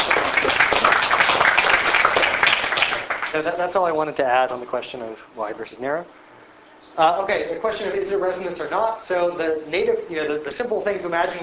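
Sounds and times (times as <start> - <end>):
audience applause: 0.0 - 3.6
speech: 3.4 - 6.2, 7.0 - 11.4.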